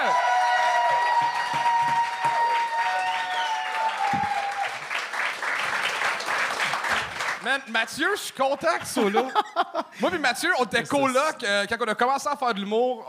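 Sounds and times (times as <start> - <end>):
audience applause and cheering: 0.0 - 8.6
whistle-like tones: 3.1 - 4.5
speech: 7.4 - 13.0
laughter: 8.7 - 10.6.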